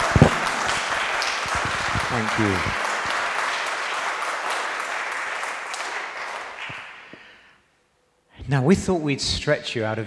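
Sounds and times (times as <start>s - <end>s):
audience applause: 0.0s - 7.4s
speech: 2.1s - 2.9s, 8.5s - 10.0s.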